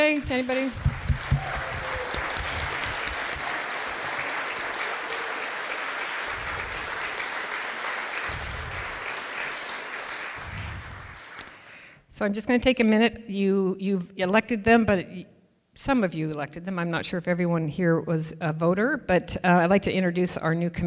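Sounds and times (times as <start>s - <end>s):
audience applause: 0.0s - 11.9s
speech: 0.1s - 0.9s, 12.2s - 20.8s.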